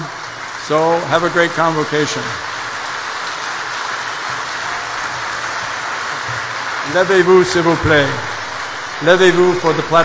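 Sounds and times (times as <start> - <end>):
audience applause for arriving platform party: 0.0 - 10.0
speech: 0.7 - 2.5, 6.9 - 8.3, 9.0 - 10.0.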